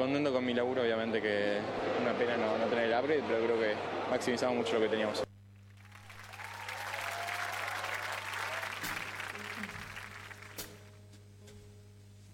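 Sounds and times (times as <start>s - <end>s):
speech: 0.0s - 5.2s
audience applause: 1.6s - 10.9s.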